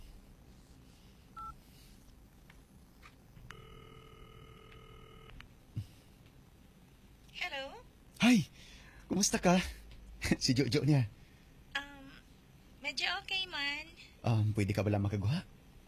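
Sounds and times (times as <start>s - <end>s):
dial-tone beeps: 1.4s - 1.6s, 3.5s - 5.4s
speech: 7.5s - 8.6s, 9.1s - 11.2s, 13.5s - 15.5s.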